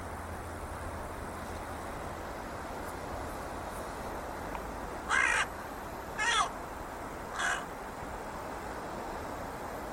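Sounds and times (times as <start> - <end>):
background hiss: 0.0 - 9.9
bird cawing: 5.1 - 5.5, 6.2 - 6.6, 7.3 - 7.7.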